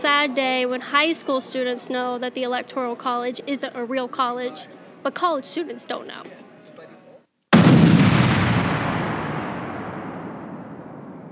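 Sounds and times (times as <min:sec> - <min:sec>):
speech: 0:00.0 - 0:06.4
explosion sound effect: 0:07.6 - 0:11.3.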